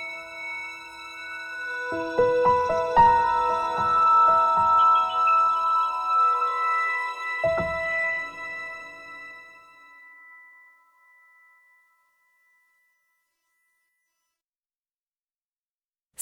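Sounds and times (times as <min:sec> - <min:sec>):
haunting TV theme music: 0:00.0 - 0:10.7.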